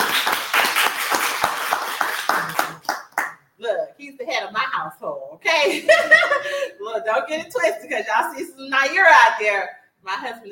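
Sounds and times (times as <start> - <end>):
audience applause for a speaker's husband at an event in Harlem, New York: 0.0 - 3.3
speech: 4.8 - 10.5.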